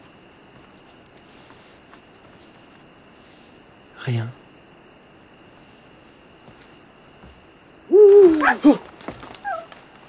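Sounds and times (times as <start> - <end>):
speech: 4.0 - 4.4, 8.5 - 8.8
owl hooting: 7.9 - 8.8, 9.4 - 9.7.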